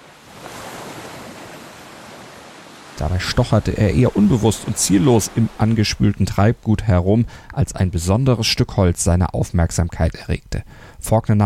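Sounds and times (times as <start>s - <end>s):
ocean waves breaking on a beach: 0.0s - 8.1s
speech: 3.0s - 11.4s.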